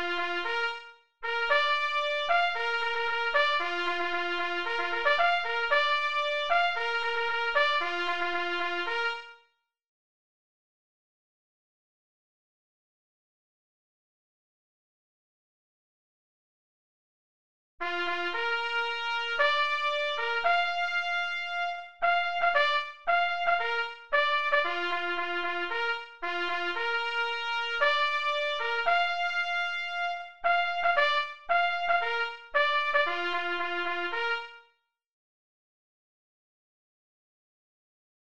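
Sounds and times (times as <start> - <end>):
signal horn at 114 bpm: 0.0 - 9.5, 17.8 - 34.8.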